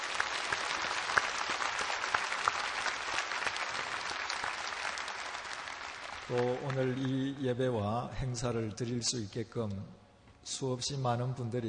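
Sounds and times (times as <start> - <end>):
audience applause: 0.0 - 7.4
speech: 6.3 - 11.6.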